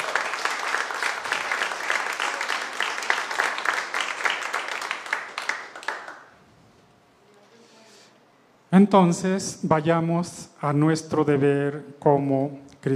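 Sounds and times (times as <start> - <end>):
audience applauding: 0.0 - 6.3
speech: 8.8 - 12.9.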